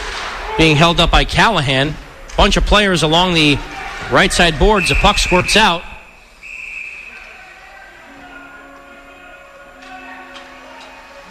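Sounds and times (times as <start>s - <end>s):
speech: 0.6s - 5.9s
referee's whistle blast during hockey game: 4.7s - 7.4s
crowd murmur: 6.9s - 11.2s.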